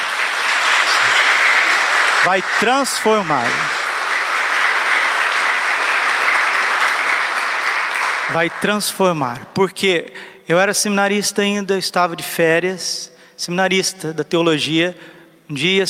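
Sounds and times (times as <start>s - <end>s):
applause: 0.0s - 9.5s
speech: 2.2s - 3.8s, 8.3s - 15.8s.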